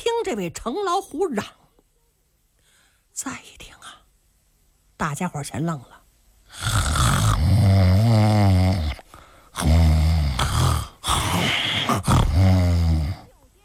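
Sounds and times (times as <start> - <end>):
speech: 0.2 - 1.6, 3.2 - 4.0, 5.0 - 7.0
person imitating snoring of a sleeping man: 6.5 - 13.4.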